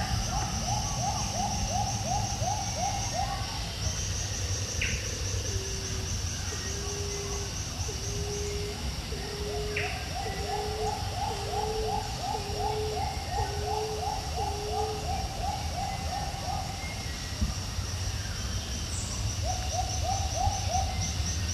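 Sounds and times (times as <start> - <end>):
Stephan's emerald dove cooing: 0.0 - 4.0, 5.0 - 17.1
bird chirp: 0.0 - 21.5
insect drone: 0.0 - 21.5.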